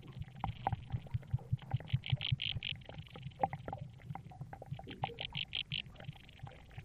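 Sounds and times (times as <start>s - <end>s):
steady low rumbling and bubbling: 0.0s - 6.8s
aquatic insect stridulating underwater: 1.8s - 3.1s, 5.1s - 6.0s.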